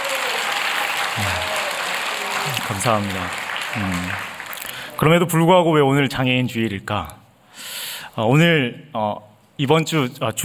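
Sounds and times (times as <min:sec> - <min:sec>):
church congregation clapping in praise during a worship service: 0:00.0 - 0:05.2
speech: 0:02.7 - 0:04.4, 0:05.0 - 0:07.2, 0:08.2 - 0:10.4.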